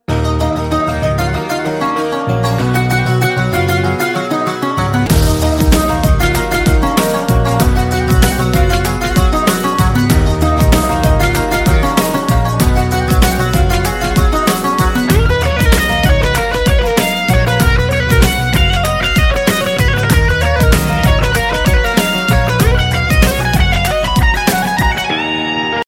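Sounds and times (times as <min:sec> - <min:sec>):
instrumental music: 0:00.0 - 0:25.8.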